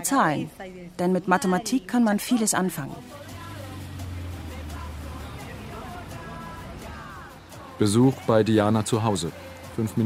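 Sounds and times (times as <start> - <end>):
speech: 0.0 - 3.3, 7.8 - 10.0
traffic on a busy narrow street in Gascon: 0.0 - 10.0.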